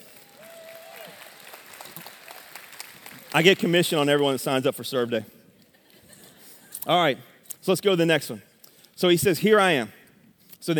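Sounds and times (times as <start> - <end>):
audience clapping hands: 0.0 - 4.2
speech: 3.3 - 5.4, 6.9 - 10.0.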